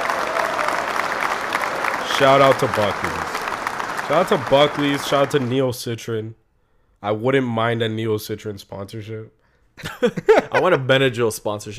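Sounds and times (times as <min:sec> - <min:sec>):
round of applause from a small crowd: 0:00.0 - 0:05.8
speech: 0:02.2 - 0:03.2, 0:04.1 - 0:06.4, 0:07.0 - 0:11.7
laughter: 0:09.8 - 0:11.0.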